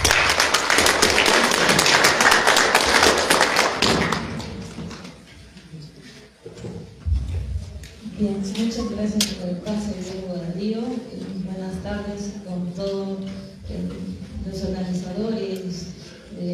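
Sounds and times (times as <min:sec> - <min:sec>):
audience applause: 0:00.0 - 0:04.9
speech: 0:08.2 - 0:16.5.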